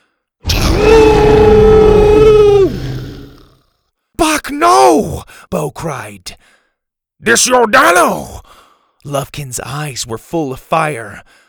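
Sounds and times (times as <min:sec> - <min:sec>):
T-Rex triumphant roar: 0:00.4 - 0:03.6
speech: 0:05.5 - 0:06.5, 0:07.2 - 0:11.4.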